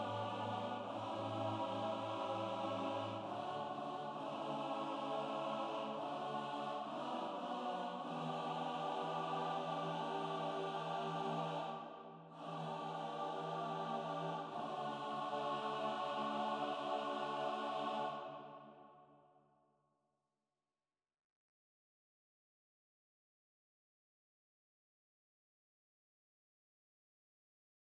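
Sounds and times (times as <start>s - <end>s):
SATB four-part choir singing: 0.0s - 19.0s.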